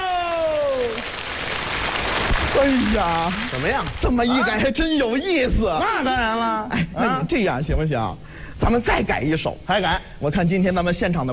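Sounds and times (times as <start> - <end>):
audience applause: 0.0 - 4.2
speech: 2.6 - 11.3.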